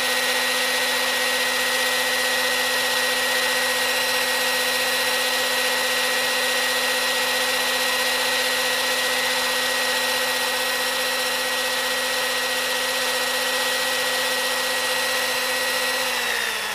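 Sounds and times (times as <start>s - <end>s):
electric mixer mixing liquid: 0.0s - 16.7s.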